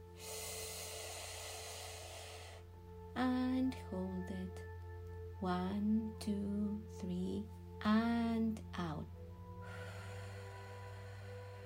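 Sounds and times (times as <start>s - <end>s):
deep breath in: 0.1s - 2.7s, 9.6s - 11.6s
speech: 3.7s - 4.6s, 5.4s - 9.2s.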